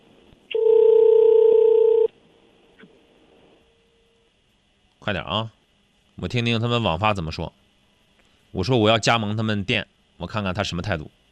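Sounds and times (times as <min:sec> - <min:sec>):
telephone tone as a call is dialed and connected: 0:00.5 - 0:02.1
speech: 0:05.1 - 0:05.6, 0:06.2 - 0:07.6, 0:08.5 - 0:11.2.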